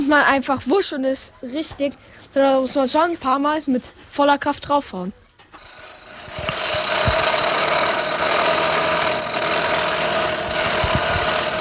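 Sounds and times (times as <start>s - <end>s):
speech: 0.0s - 5.7s
broken lawnmower engine sputtering: 5.6s - 11.5s.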